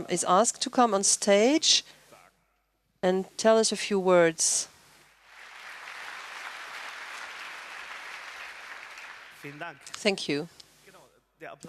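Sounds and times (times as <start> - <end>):
speech: 0.0 - 2.0, 3.0 - 4.7, 9.4 - 10.6, 11.4 - 11.6
audience applause: 5.2 - 9.9.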